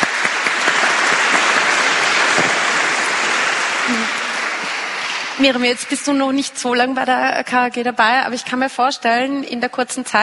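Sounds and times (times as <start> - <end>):
applause: 0.0 - 6.1
speech: 5.4 - 10.2.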